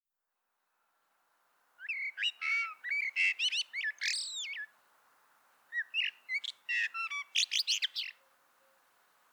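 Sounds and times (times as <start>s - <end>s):
common blackbird singing: 1.8s - 4.7s, 5.7s - 8.2s.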